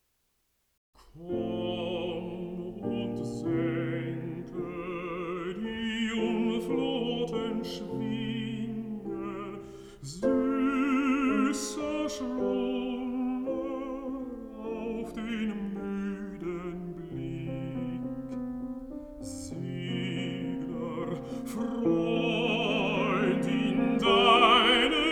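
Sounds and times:
person singing: 0:01.0 - 0:18.4, 0:19.2 - 0:25.0
piano: 0:01.0 - 0:25.0.

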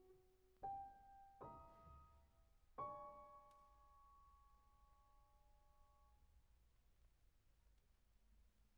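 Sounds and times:
piano variations, very moderate movement: 0:00.0 - 0:02.2.

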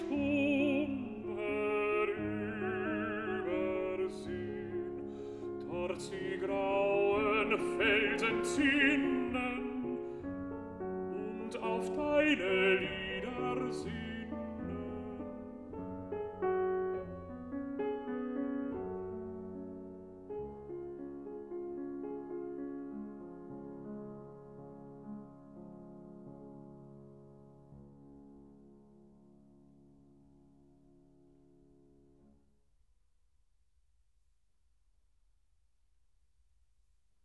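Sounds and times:
person singing: 0:00.0 - 0:10.2, 0:11.0 - 0:15.7
piano: 0:00.0 - 0:32.7.

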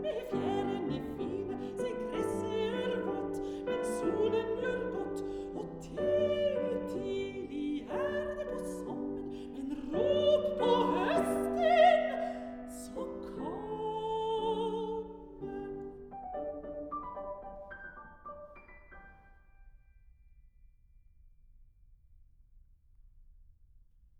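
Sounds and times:
person singing children's songs: 0:00.0 - 0:17.0
piano: 0:00.0 - 0:20.5.

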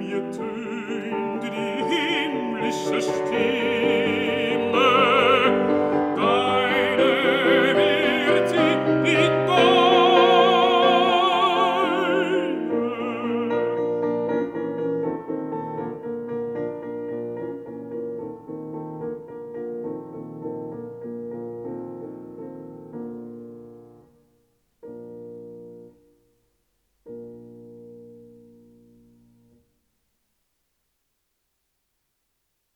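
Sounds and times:
person singing: 0:00.0 - 0:14.5
piano: 0:00.0 - 0:30.0.

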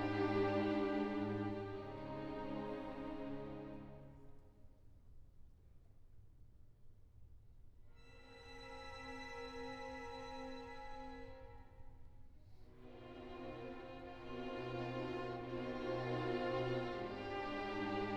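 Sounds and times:
orchestral etude: 0:00.0 - 0:04.1, 0:08.0 - 0:11.9, 0:12.7 - 0:18.1.

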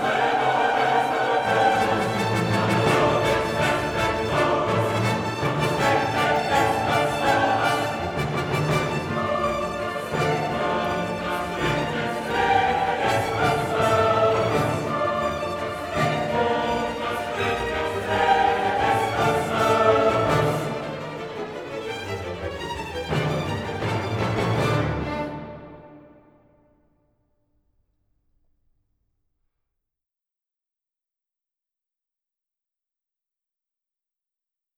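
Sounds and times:
soloists singing in a requiem: 0:00.0 - 0:21.6
orchestra playing a requiem: 0:00.0 - 0:26.4
chorus singing in a requiem: 0:00.0 - 0:26.6.

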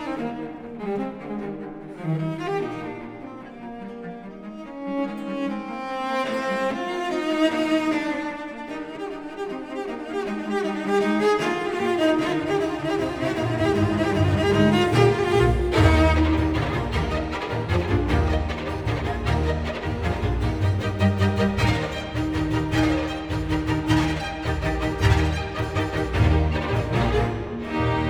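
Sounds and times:
cello: 0:00.0 - 0:28.0
strings: 0:00.0 - 0:28.0
continuo: 0:11.1 - 0:28.0.

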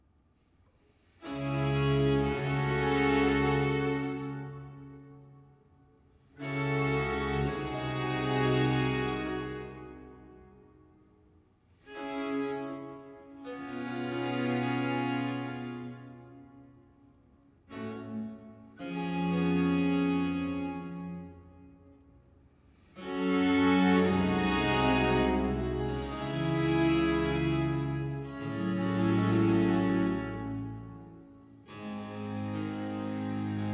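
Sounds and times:
concerto grosso in F major: 0:01.2 - 0:05.3, 0:06.4 - 0:10.7, 0:11.8 - 0:16.9, 0:17.6 - 0:22.1, 0:22.9 - 0:33.7.

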